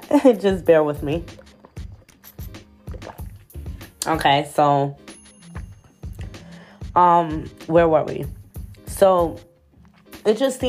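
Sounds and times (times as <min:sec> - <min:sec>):
speech: 0:00.1 - 0:01.4, 0:04.0 - 0:05.0, 0:07.0 - 0:08.4, 0:09.0 - 0:09.5, 0:10.2 - 0:10.6
person sipping and gulping juice: 0:01.2 - 0:04.1.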